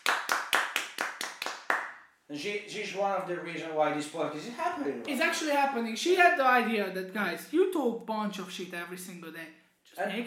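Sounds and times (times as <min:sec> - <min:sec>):
small group applause: 0:00.0 - 0:02.1
speech: 0:02.3 - 0:10.2.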